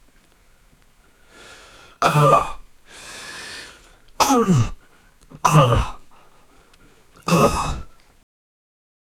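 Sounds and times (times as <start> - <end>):
young man in pain: 2.0 - 2.6, 4.2 - 4.8, 5.4 - 6.2, 7.2 - 7.9.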